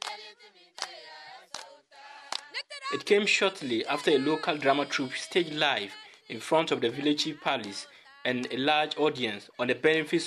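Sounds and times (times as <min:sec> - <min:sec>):
women clapping in Wantugu: 0:00.0 - 0:00.2, 0:00.8 - 0:01.7, 0:02.3 - 0:02.5
crowd of women singing in Wantugu: 0:00.0 - 0:08.5
speech: 0:02.6 - 0:10.2
laughter: 0:03.0 - 0:07.8.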